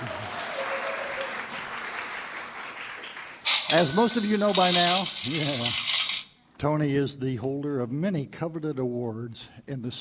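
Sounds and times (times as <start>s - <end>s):
audience applause: 0.0s - 5.8s
speech: 3.7s - 5.9s, 6.6s - 9.9s.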